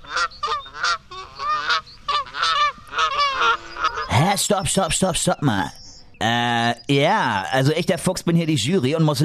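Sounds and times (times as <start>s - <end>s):
goose honking: 0.0s - 4.2s
speech: 4.4s - 9.2s.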